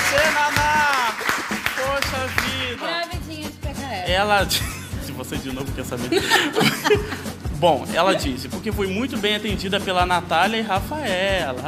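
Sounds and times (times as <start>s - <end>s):
hand clapping: 0.0s - 3.6s
speech: 4.2s - 11.6s
laughter: 5.9s - 7.4s.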